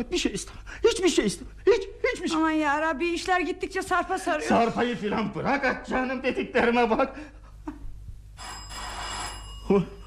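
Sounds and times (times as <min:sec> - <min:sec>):
speech: 0:00.0 - 0:07.4, 0:09.7 - 0:10.0
doorbell ringing: 0:08.4 - 0:10.0.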